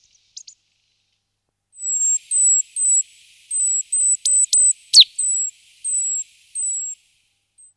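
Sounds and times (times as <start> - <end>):
great tit Parus major calls: 1.8 - 7.1.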